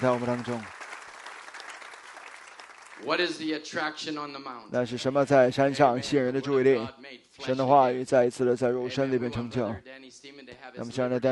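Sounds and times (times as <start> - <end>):
speech: 0.0 - 0.8, 3.0 - 11.2
audience clapping hands: 0.0 - 3.6.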